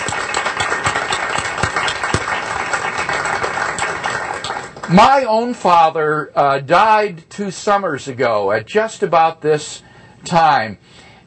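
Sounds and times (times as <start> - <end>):
crowd applauding for fathers: 0.0 - 5.0
speech: 4.9 - 11.0.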